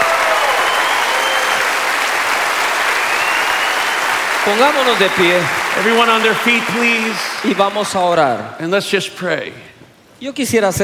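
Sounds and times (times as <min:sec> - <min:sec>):
audience applause: 0:00.0 - 0:08.5
speech: 0:04.5 - 0:10.8.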